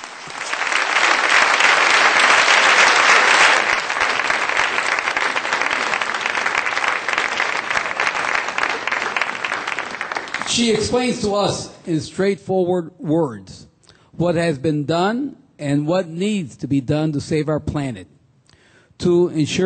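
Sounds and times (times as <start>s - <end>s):
audience applause: 0.0s - 11.3s
speech: 10.6s - 13.6s, 14.2s - 18.2s, 19.0s - 19.6s.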